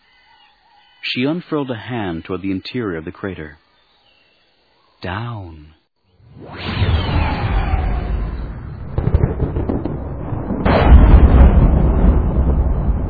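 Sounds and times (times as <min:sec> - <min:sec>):
speech: 0:01.0 - 0:03.6, 0:05.0 - 0:05.8
thunder crash: 0:06.4 - 0:13.0.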